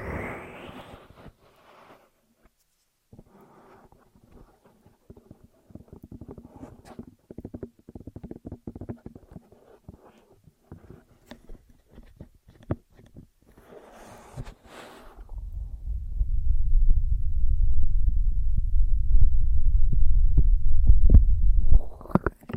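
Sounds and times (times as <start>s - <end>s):
ear massage and cleaning rubbing and scratching: 0.7s - 15.4s
low rumble: 15.1s - 22.2s.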